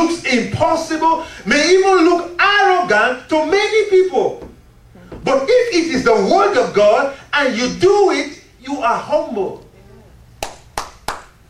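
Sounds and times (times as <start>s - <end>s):
speech: 0.0s - 4.5s, 5.2s - 9.6s
audience clapping: 10.4s - 11.4s.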